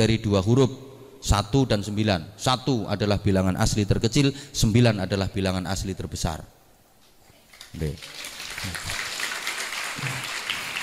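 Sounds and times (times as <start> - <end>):
speech: 0.0 - 6.6, 7.7 - 9.0, 10.0 - 10.3
audience clapping hands: 7.5 - 10.8.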